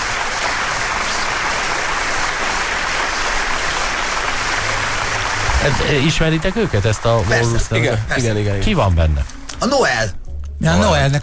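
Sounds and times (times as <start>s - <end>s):
crowd applauding: 0.0s - 9.0s
speech: 5.6s - 11.2s.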